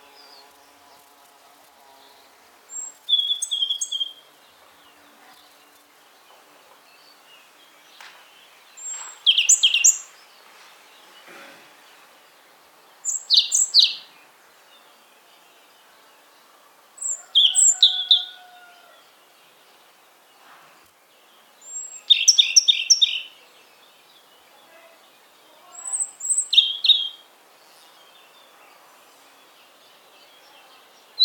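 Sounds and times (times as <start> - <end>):
European robin singing: 2.0 - 16.4, 17.0 - 20.4, 21.1 - 31.2.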